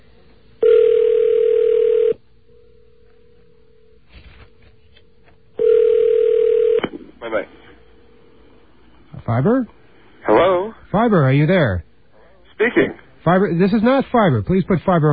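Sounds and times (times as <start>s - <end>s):
telephone line ringing out: 0.6s - 2.2s, 5.6s - 6.8s
speech: 9.3s - 9.8s, 10.9s - 11.9s, 12.6s - 15.1s.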